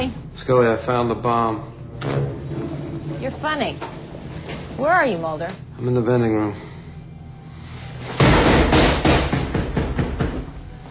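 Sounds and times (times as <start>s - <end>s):
speech: 0.0s - 2.4s, 3.2s - 4.0s, 4.8s - 6.7s
pounding on a door: 8.2s - 10.6s.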